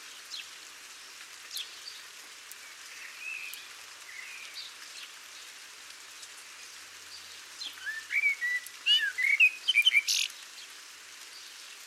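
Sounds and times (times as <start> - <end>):
faint steady hiss: 0.0 - 11.8
Common blackbird calling: 7.8 - 10.3.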